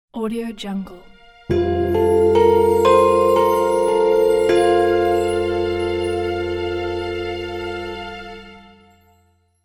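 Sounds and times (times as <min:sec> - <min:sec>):
temple blessing shine sound: 0:01.5 - 0:09.0.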